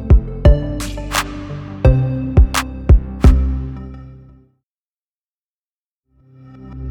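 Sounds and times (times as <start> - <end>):
modern tech logo intro music: 0.3 - 4.3.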